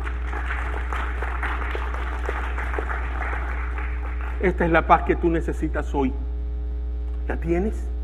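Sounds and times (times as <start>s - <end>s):
audience applauding: 0.0s - 5.1s
speech: 4.4s - 6.3s, 7.3s - 7.9s.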